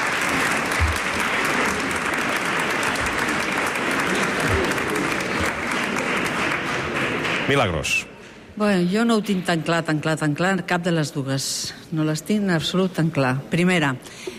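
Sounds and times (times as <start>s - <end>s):
applause: 0.0s - 8.1s
speech: 7.5s - 14.3s.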